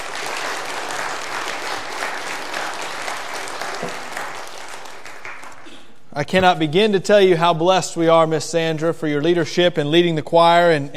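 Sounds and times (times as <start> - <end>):
audience applauding the choir: 0.0 - 5.7
speech: 6.2 - 10.9.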